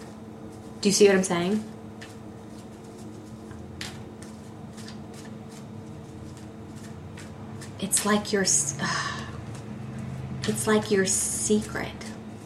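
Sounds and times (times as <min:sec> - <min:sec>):
speech: 0:00.8 - 0:01.8, 0:08.0 - 0:09.1, 0:10.5 - 0:12.0
tarot cards riffling and slapping during a reading: 0:02.0 - 0:08.2, 0:09.4 - 0:10.5.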